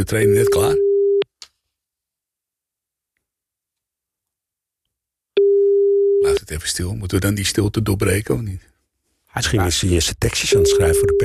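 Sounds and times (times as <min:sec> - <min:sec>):
speech: 0:00.0 - 0:00.9, 0:06.2 - 0:08.7, 0:09.4 - 0:11.2
telephone ringback tone during a call: 0:05.4 - 0:06.4, 0:10.5 - 0:11.2.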